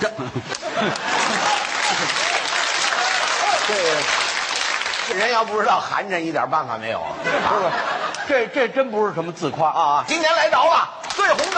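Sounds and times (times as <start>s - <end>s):
laughter: 0.0s - 4.0s, 6.9s - 9.1s
speech: 0.2s - 1.1s, 5.1s - 11.5s
audience applause: 0.8s - 5.8s.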